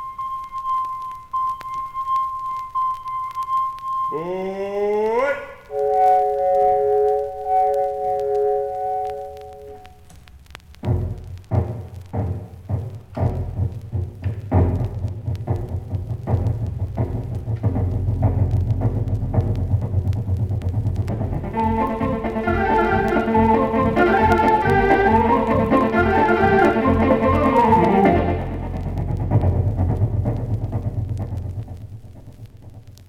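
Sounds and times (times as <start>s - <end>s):
organ imitating a steam locomotive whistle chord: 0.0s - 4.2s, 5.7s - 10.1s, 21.4s - 28.8s
speech: 4.1s - 4.6s
organ imitating steam locomotive chuffing: 5.1s - 9.8s, 10.9s - 32.2s.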